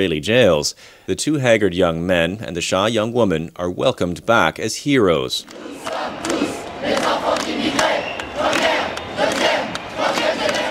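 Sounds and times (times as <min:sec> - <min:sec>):
speech: 0:00.0 - 0:06.3
crowd shouting at a pro-Palestinian rally in a Vénissieux community center amphitheater: 0:05.4 - 0:10.7.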